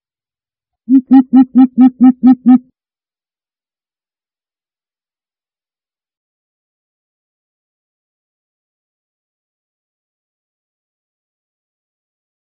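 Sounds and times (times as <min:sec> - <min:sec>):
greater coucal deep hollow hoots: 0:00.9 - 0:02.6.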